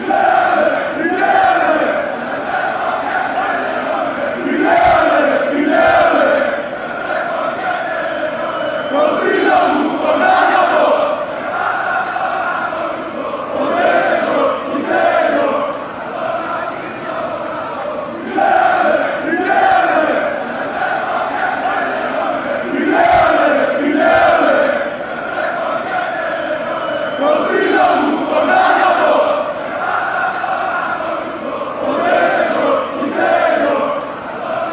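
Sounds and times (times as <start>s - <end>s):
Olympiakos crowd shouting: 0.0s - 34.7s.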